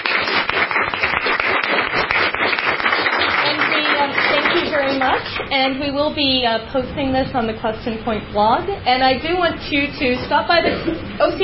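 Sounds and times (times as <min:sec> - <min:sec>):
audience applause for panelists: 0:00.0 - 0:05.5
speech: 0:05.4 - 0:11.4.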